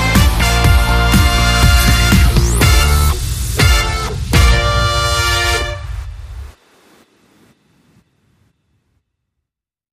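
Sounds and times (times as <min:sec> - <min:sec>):
synth bass: 0:00.0 - 0:06.5.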